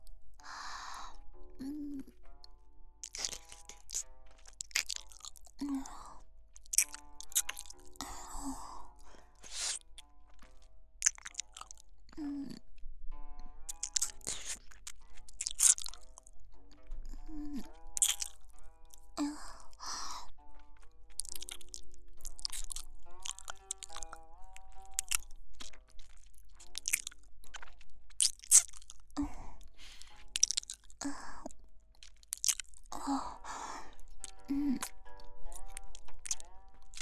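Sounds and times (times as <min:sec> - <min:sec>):
breaths between mouthfuls: 0:00.4 - 0:02.1, 0:05.5 - 0:06.3, 0:08.0 - 0:09.8, 0:19.0 - 0:20.4, 0:29.2 - 0:30.3, 0:31.0 - 0:31.5, 0:32.9 - 0:35.0
person eating with crunching bites and chewing: 0:01.6 - 0:12.9, 0:13.5 - 0:37.0.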